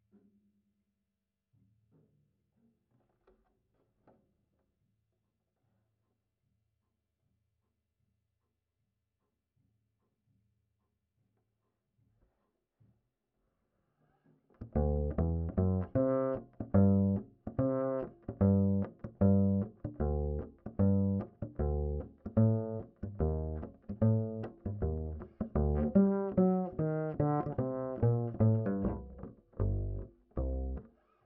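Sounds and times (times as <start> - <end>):
ragtime bass line: 14.6 - 30.9.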